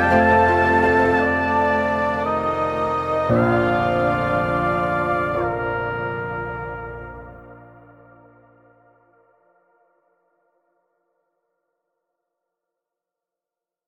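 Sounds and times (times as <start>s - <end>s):
intimate studio brass instruments playing: 0.0s - 8.6s.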